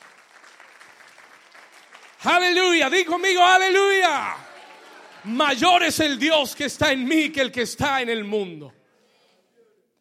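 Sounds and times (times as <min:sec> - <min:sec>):
audience applause: 0:00.0 - 0:07.8
speech: 0:02.2 - 0:04.4, 0:05.2 - 0:08.8.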